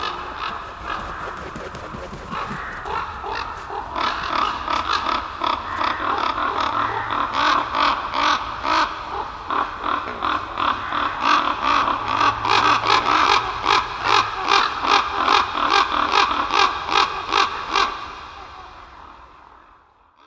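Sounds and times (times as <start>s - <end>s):
ravens croaking: 0.0s - 20.2s.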